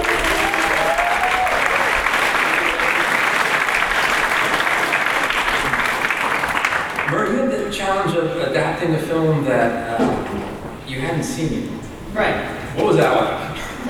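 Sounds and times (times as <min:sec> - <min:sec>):
audience applause: 0:00.0 - 0:07.3
speech: 0:08.2 - 0:10.2, 0:10.9 - 0:13.8.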